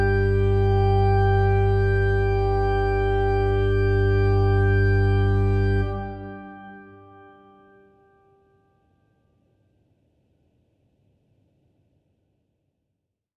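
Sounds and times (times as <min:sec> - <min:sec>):
organist playing hymns on an organ: 0:00.0 - 0:07.9.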